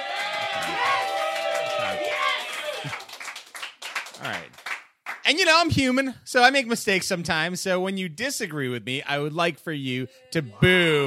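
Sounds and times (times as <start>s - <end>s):
audience cheering: 0.0s - 3.4s
speech: 5.3s - 11.0s.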